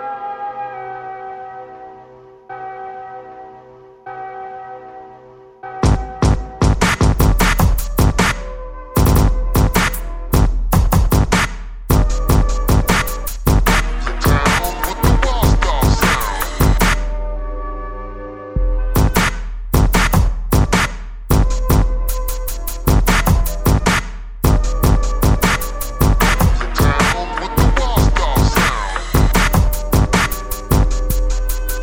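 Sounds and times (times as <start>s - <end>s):
breakbeat drums: 5.9s - 17.1s, 18.6s - 31.8s.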